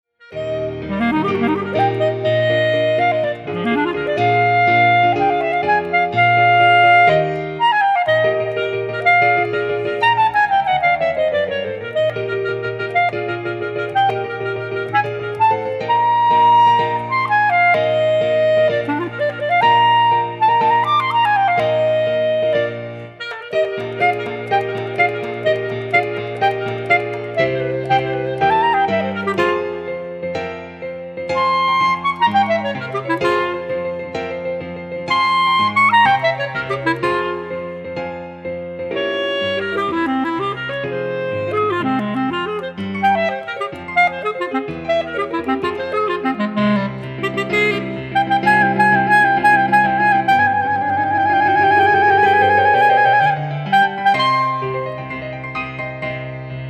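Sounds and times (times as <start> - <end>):
clarinet concerto first movement: 0.2 - 56.6.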